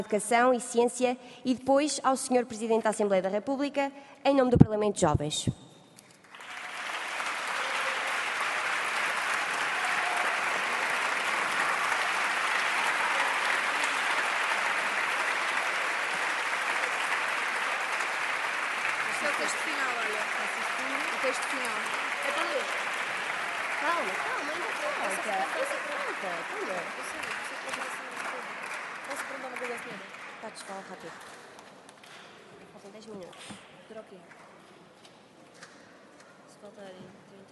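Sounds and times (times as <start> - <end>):
speech: 0.0 - 5.7
loud applause from a large audience: 6.2 - 31.4.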